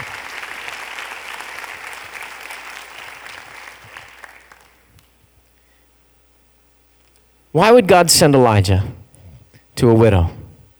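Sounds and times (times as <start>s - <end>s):
audience clapping: 0.0s - 5.0s
speech: 7.6s - 9.0s, 9.8s - 10.4s.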